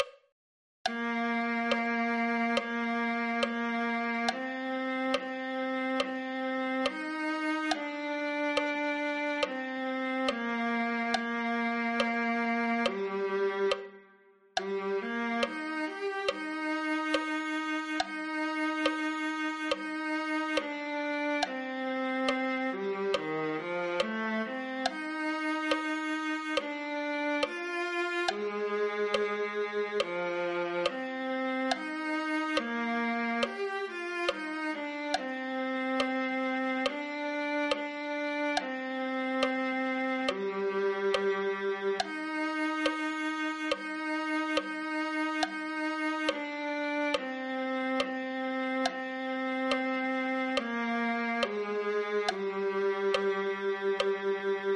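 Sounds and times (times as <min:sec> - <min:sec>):
viola: 0:00.9 - 0:54.7.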